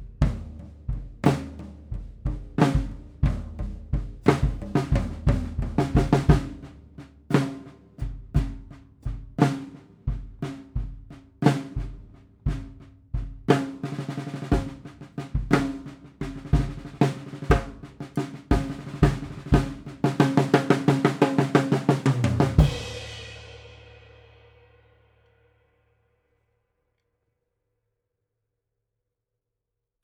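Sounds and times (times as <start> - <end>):
8x15 drum: 0.0 - 24.4.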